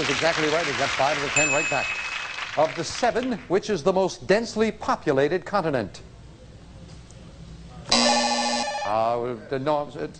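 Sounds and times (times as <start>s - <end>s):
speech: 0.0s - 6.1s, 8.9s - 10.1s
quiz show answer buzzer: 7.9s - 9.2s.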